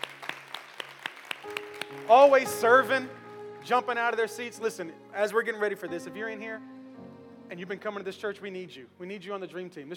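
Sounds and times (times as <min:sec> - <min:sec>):
audience applause: 0:00.0 - 0:02.9
speech: 0:02.1 - 0:06.8, 0:07.5 - 0:09.9.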